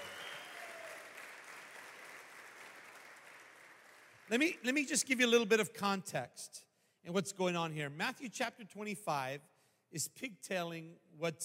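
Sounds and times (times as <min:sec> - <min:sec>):
church congregation applauding: 0:00.0 - 0:05.2
speech: 0:04.3 - 0:11.4.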